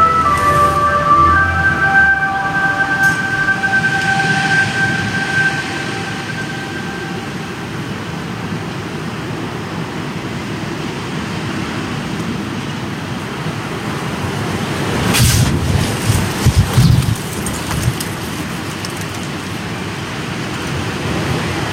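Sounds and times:
sustained tones: 0.0 - 9.2
strong wind roaring at the start of the rainy season: 0.0 - 21.7.

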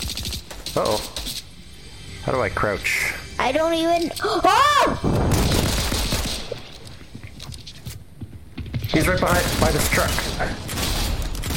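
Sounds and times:
speech: 0.8 - 1.2, 2.3 - 5.4, 9.0 - 10.7
video game gunfire: 5.0 - 6.7, 9.0 - 11.5.

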